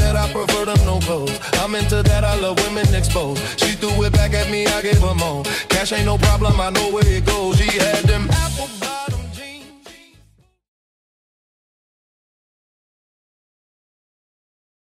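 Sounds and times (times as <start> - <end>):
70s soul funk music at 115 bpm: 0.0 - 10.4.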